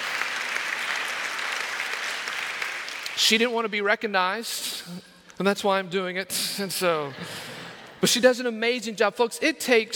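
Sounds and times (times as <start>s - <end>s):
round of applause: 0.0s - 3.4s
speech: 3.2s - 9.9s.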